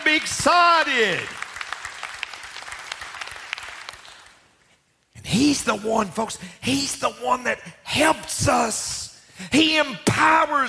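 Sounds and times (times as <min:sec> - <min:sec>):
audience clapping: 0:00.0 - 0:04.6
speech: 0:00.1 - 0:01.4, 0:05.3 - 0:10.6.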